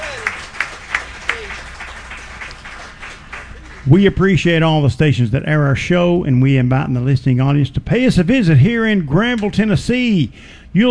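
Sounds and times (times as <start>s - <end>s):
audience applause: 0.0s - 4.0s
speech: 3.9s - 10.8s.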